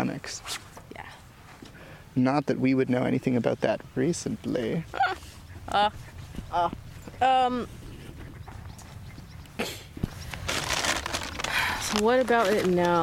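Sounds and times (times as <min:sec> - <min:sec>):
speech: 0:00.2 - 0:00.6, 0:02.2 - 0:07.8, 0:11.9 - 0:13.0
bag of bird seed rustling: 0:10.0 - 0:13.0.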